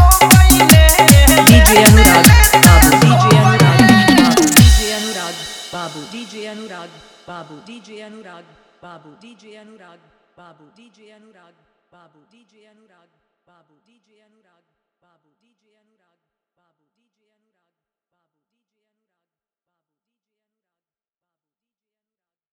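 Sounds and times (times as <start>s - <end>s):
Bhojpuri DJ song: 0.0s - 7.7s.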